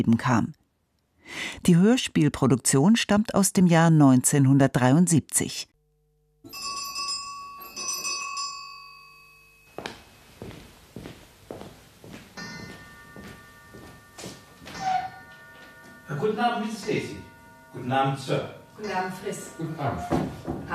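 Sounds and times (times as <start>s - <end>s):
speech: 0.0s - 0.6s, 1.3s - 5.7s, 16.2s - 17.2s, 17.8s - 20.7s
clock striking the hour: 6.5s - 8.9s, 12.4s - 20.7s
footsteps: 9.7s - 16.1s, 19.9s - 20.7s.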